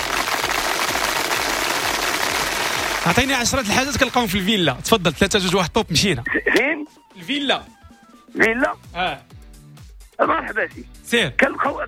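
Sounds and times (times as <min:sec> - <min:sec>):
people clapping for a person: 0:00.0 - 0:04.6
speech: 0:03.1 - 0:09.4, 0:10.2 - 0:11.8.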